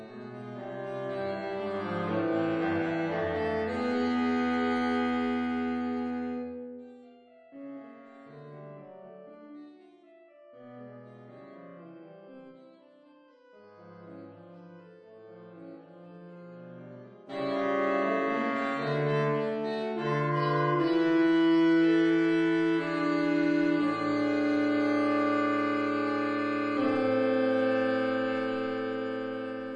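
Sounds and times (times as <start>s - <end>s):
saxophone trio playing a fugue in A minor: 0.0s - 6.6s, 17.3s - 29.7s.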